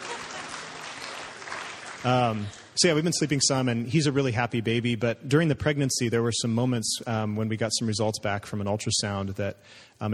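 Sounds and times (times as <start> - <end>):
audience clapping: 0.0 - 2.9
speech: 2.0 - 10.1.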